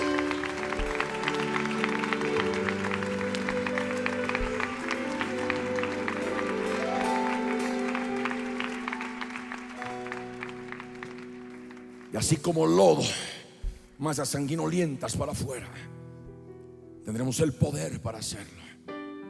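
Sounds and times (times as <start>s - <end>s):
held musical tone: 0.0s - 11.9s
audience clapping: 0.0s - 13.3s
speech: 12.2s - 13.3s, 14.0s - 16.0s, 17.1s - 18.6s.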